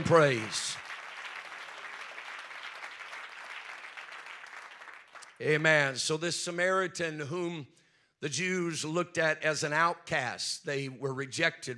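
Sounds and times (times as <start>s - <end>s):
speech: 0.0s - 0.7s, 5.4s - 11.7s
audience clapping hands: 0.0s - 6.0s.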